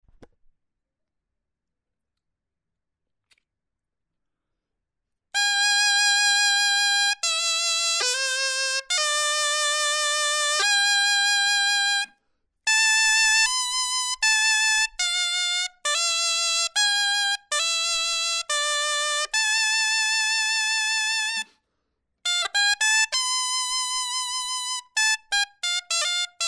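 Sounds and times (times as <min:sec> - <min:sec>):
clarinet etude: 0:05.4 - 0:21.6, 0:22.2 - 0:26.4.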